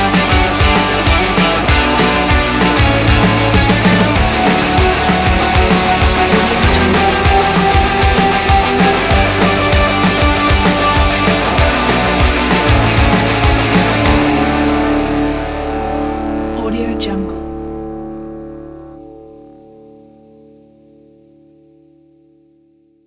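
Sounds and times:
inspiring upbeat rock music: 0.0s - 16.6s.

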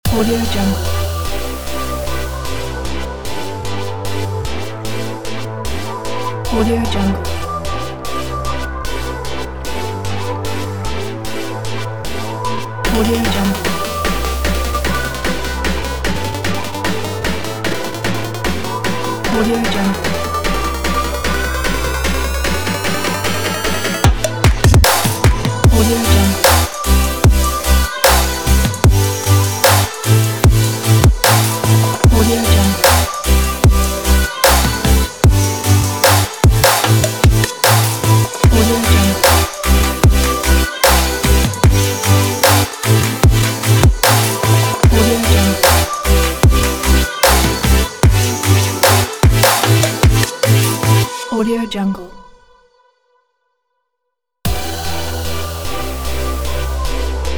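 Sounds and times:
future bass music: 0.0s - 51.4s, 54.5s - 57.3s.

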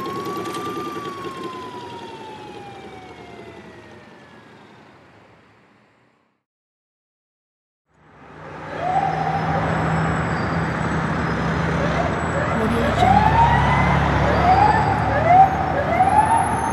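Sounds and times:
ambulance siren: 0.0s - 5.0s, 12.6s - 16.7s
city traffic: 4.3s - 6.2s, 8.0s - 16.7s.

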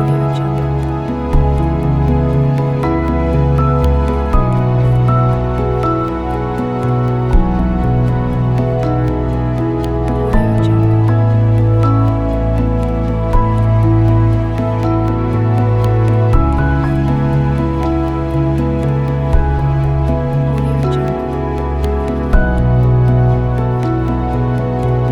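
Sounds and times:
atmospheric background: 0.0s - 25.1s.

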